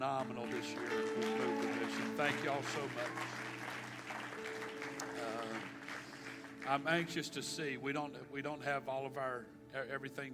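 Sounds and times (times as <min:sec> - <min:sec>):
speech: 0:00.0 - 0:03.6, 0:06.6 - 0:10.3
audience applause: 0:00.0 - 0:07.2.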